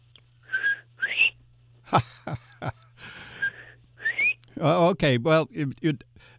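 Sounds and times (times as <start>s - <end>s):
person whistling imitation of bobwhite quail call: 0.5s - 1.4s, 3.4s - 4.4s
speech: 1.9s - 2.8s, 4.6s - 6.1s.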